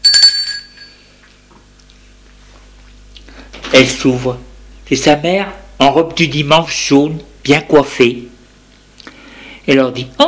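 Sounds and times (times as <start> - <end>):
doorbell chime: 0.0 - 1.1
speech: 3.7 - 8.3, 9.7 - 10.2.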